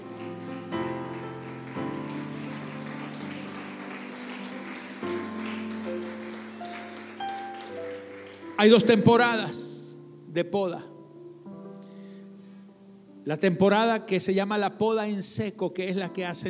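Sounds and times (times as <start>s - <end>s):
audience applause: 0.0s - 8.9s
speech: 8.6s - 9.7s, 10.3s - 10.9s, 13.3s - 16.4s.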